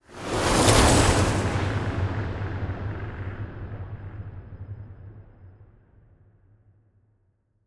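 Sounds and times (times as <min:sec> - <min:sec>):
battleship moving: 0:00.1 - 0:02.1.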